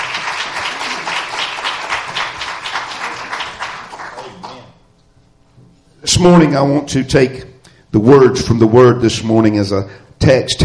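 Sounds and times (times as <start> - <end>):
audience clapping hands in praise: 0.0 - 4.8
speech: 6.1 - 10.6.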